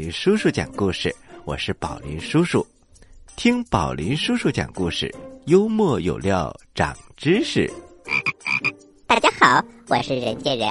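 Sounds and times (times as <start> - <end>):
speech: 0.0 - 2.8, 3.4 - 8.3, 9.1 - 10.6
frog croaking: 8.0 - 8.8.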